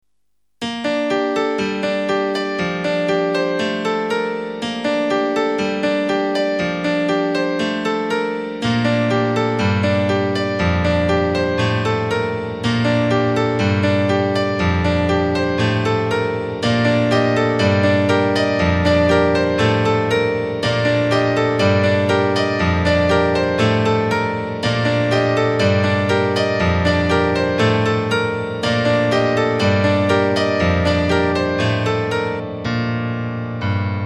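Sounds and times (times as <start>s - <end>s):
music interlude: 0.6s - 33.9s.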